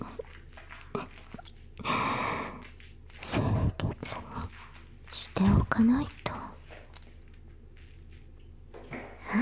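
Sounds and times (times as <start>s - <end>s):
soft water dripping: 0.0s - 7.4s
wet squishing from body being washed: 0.0s - 8.2s
speech: 5.4s - 6.2s.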